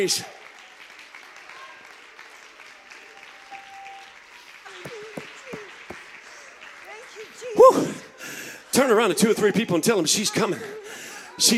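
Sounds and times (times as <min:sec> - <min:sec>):
speech: 0:00.0 - 0:00.4, 0:08.8 - 0:10.8, 0:11.4 - 0:11.5
audience clapping hands: 0:00.0 - 0:08.5.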